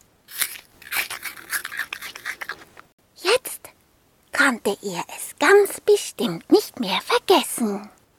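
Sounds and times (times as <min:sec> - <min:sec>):
biting into an apple: 0:00.3 - 0:02.9
speech: 0:04.5 - 0:08.0.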